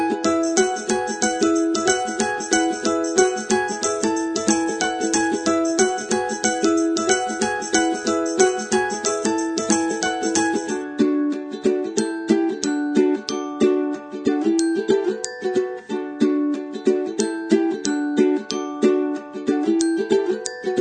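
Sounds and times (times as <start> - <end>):
piano: 0.0 - 14.2
ukulele: 0.0 - 20.8
tambourine: 0.3 - 10.8.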